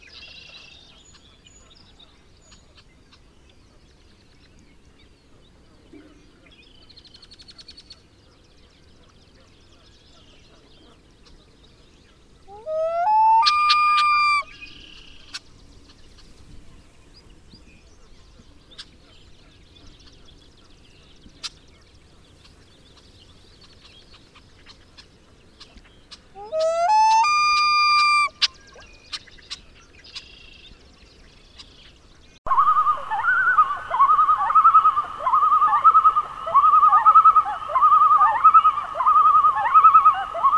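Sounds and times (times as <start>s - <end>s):
Common Loon calling: 12.5s - 15.4s, 26.4s - 28.6s, 32.5s - 40.5s.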